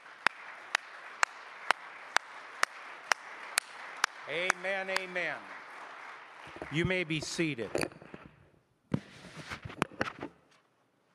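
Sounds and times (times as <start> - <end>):
audience clapping in unison: 0.0 - 7.7
soft steady noise: 0.0 - 11.1
speech: 4.3 - 5.6, 6.5 - 8.0.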